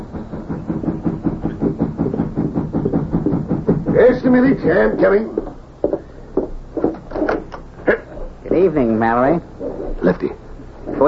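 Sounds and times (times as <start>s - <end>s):
knocking on a door: 0.1s - 7.6s
speech: 4.0s - 5.4s, 8.6s - 10.4s.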